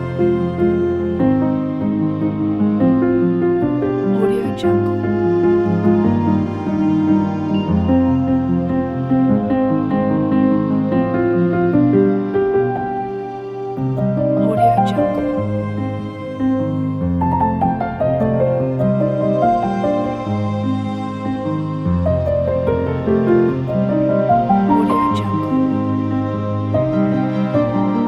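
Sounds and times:
inspirational piano music: 0:00.0 - 0:28.0.

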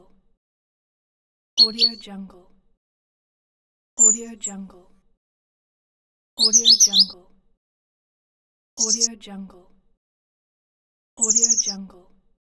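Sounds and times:
birds: 0:01.6 - 0:02.0, 0:04.0 - 0:04.3, 0:06.4 - 0:07.2, 0:08.8 - 0:09.1, 0:11.2 - 0:11.8.

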